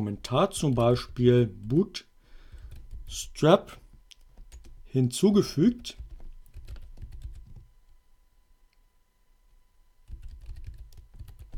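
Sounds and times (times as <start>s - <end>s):
speech: 0.0s - 2.1s, 3.1s - 3.8s, 4.9s - 6.0s
computer keyboard typing a command: 0.4s - 1.8s, 2.5s - 3.2s, 4.2s - 4.8s, 5.8s - 7.7s, 10.0s - 11.5s.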